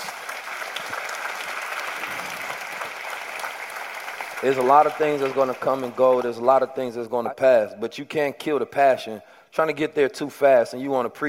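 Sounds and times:
audience applause: 0:00.0 - 0:06.5
speech: 0:04.4 - 0:11.2.

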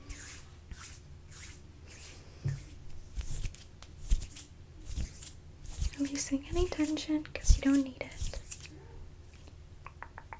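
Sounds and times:
hands rubbing down arms: 0:00.0 - 0:08.7
speech: 0:06.0 - 0:08.2.

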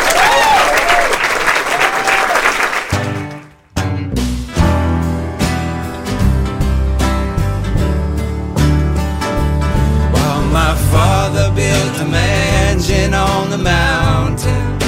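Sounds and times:
audience applause and cheering at a live concert: 0:00.0 - 0:03.6
full band music at a live concert: 0:02.8 - 0:14.8.

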